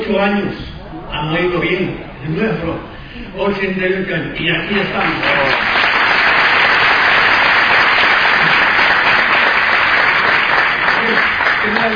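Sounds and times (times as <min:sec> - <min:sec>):
speech: 0:00.1 - 0:05.7
audience applause: 0:04.9 - 0:11.9.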